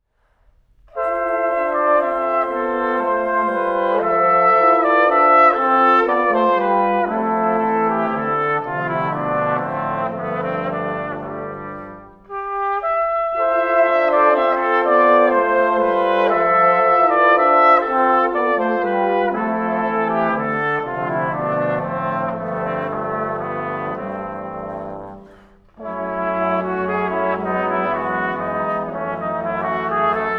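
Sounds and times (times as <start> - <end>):
brass quintet playing an andante: 0.8 - 30.3.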